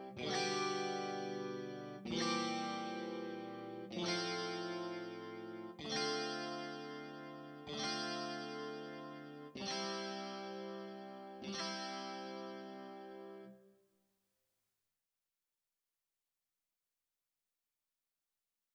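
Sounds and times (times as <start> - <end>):
electric guitar: 0.0 - 13.5.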